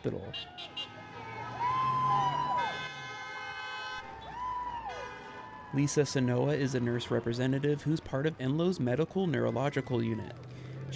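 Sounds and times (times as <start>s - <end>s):
speech: 0.0s - 0.9s, 5.7s - 10.9s
car horns honking on busy street: 0.0s - 1.6s, 2.3s - 4.3s, 4.9s - 7.5s
steady street traffic noise: 0.0s - 10.9s.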